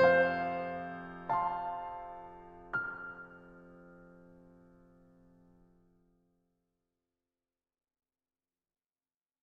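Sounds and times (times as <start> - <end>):
solo piano: 0.0 - 6.3.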